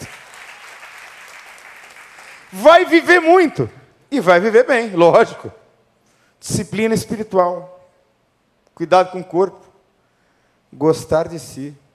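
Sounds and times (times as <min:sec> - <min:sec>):
audience applause: 0:00.0 - 0:02.6
speech: 0:02.5 - 0:05.6, 0:06.4 - 0:07.7, 0:08.8 - 0:09.7, 0:10.7 - 0:11.8.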